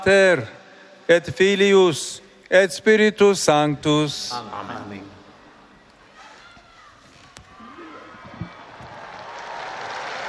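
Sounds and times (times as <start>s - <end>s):
speech: 0.0s - 5.2s
large outdoor crowd applause in a large public square: 8.1s - 10.2s.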